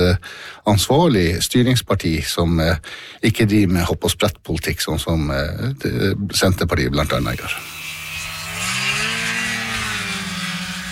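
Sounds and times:
speech: 0.0s - 7.8s
snowmobile engine revving: 7.4s - 10.9s.

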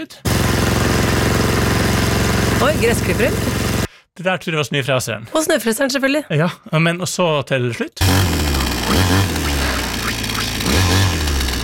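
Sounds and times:
speech: 0.0s - 0.7s, 2.6s - 3.6s, 4.2s - 9.5s
chainsaw running: 0.2s - 3.9s, 8.0s - 11.6s.

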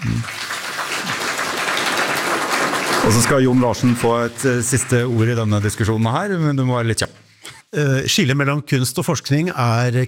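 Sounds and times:
audience applause during a panel discussion on art and research: 0.0s - 5.9s
speech: 3.0s - 10.0s.

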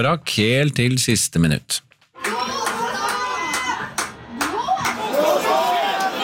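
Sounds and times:
speech: 0.0s - 1.9s
scattered claps: 1.9s - 5.3s
Norwegian football fans shouting for the referee to end the match: 2.2s - 6.2s.

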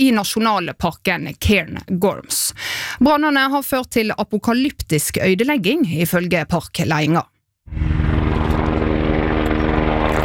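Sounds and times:
speech: 0.0s - 7.8s
firefighting helicopter dropping water over Cairngorms national park: 7.8s - 10.2s.

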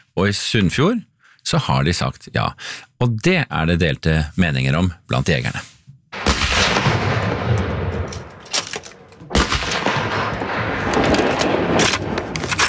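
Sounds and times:
speech: 0.2s - 5.7s
gunshots at Kråkenesmarka shooting range outside Førde: 6.2s - 12.6s.

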